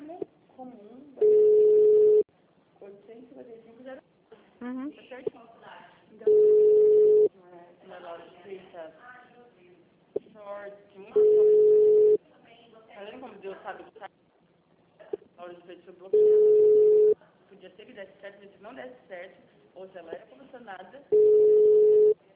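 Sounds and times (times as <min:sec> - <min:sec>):
telephone ringing: 0:01.2 - 0:02.3, 0:06.3 - 0:07.3, 0:11.2 - 0:12.2, 0:16.2 - 0:17.2, 0:21.1 - 0:22.2.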